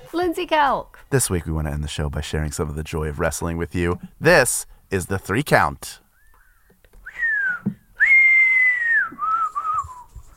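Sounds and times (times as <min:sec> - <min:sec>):
speech: 0:00.1 - 0:06.0
person whistling bird call imitation: 0:06.2 - 0:10.2.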